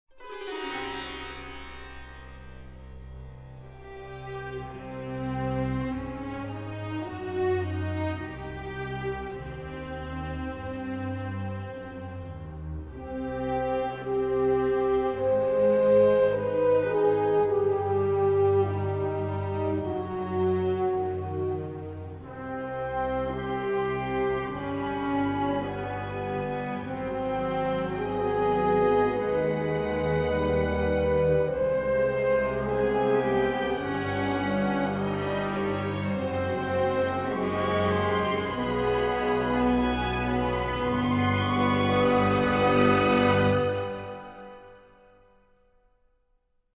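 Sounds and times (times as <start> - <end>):
music: 0.0 - 46.7.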